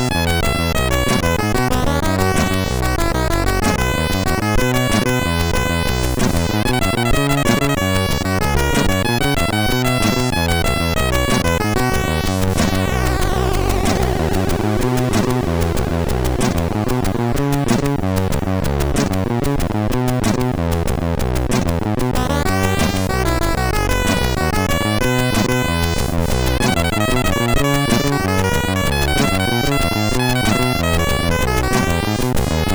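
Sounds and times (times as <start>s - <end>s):
funk chiptune on the MOS6581R3 sound chip: 0.0s - 32.7s.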